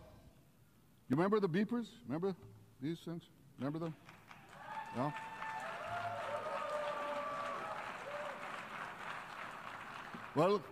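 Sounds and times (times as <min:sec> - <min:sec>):
speech: 0:01.1 - 0:04.2, 0:04.9 - 0:05.3, 0:10.4 - 0:10.6
audience applauding at the UN General Assembly: 0:04.0 - 0:10.6.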